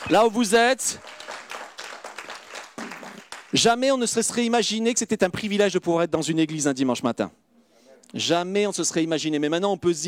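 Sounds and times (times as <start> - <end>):
church audience applauding: 0.0 - 3.8
speech: 0.1 - 1.2, 3.5 - 7.4, 8.1 - 10.0.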